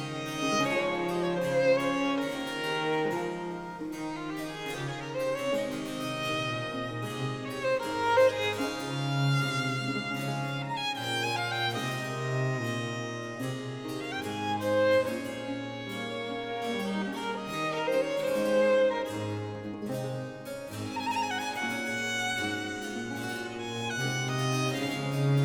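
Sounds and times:
violin and basso continuo sonata movement in D major: 0.0s - 25.4s.

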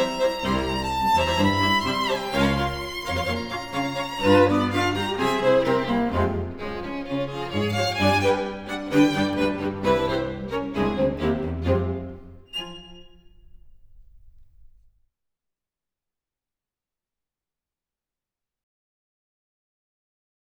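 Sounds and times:
string quartet playing tango: 0.0s - 14.1s.

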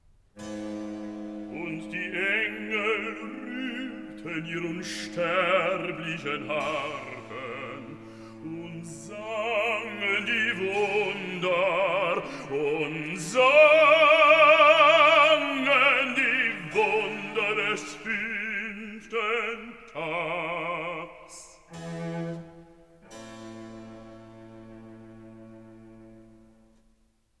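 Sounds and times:
sung recitative: 1.4s - 23.2s.

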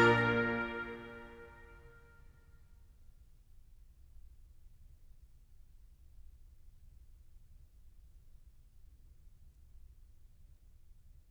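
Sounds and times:
organ concerto minuet in B flat: 0.0s - 1.6s.

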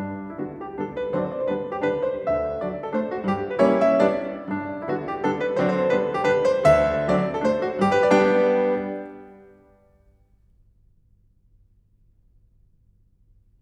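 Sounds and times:
piano mazurka in G major: 0.0s - 9.9s.

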